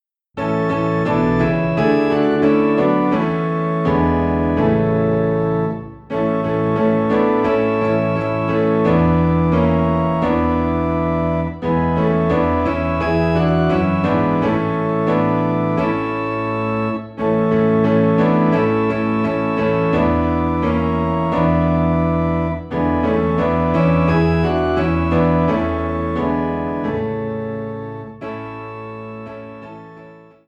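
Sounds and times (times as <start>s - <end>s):
low piano in A: 0.0s - 30.4s
low organ in A: 0.4s - 30.4s.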